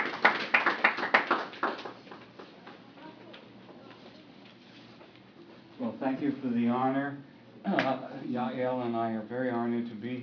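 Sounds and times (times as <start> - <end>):
audience applause welcoming speakers at a poetry discussion group: 0.0 - 2.6
speech: 6.1 - 10.2.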